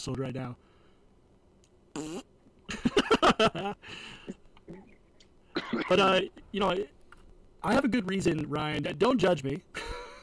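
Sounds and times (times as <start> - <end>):
speech: 0.0 - 0.7, 2.0 - 2.3, 3.4 - 4.8, 5.7 - 7.0, 7.6 - 9.9
fart: 1.9 - 2.3
laughter: 2.7 - 4.4.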